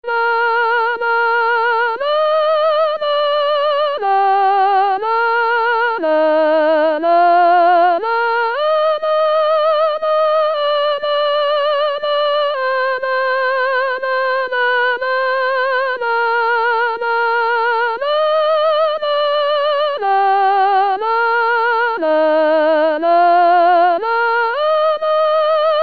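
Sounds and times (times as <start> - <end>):
sopranos singing: 0.0 - 25.8.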